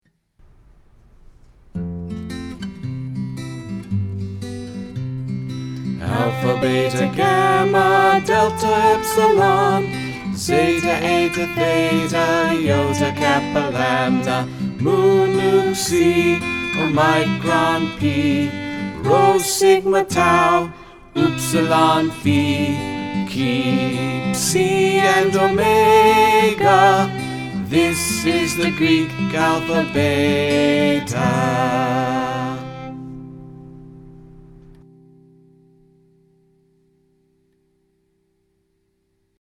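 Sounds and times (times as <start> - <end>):
Greek alphabet song: 6.0 - 32.7.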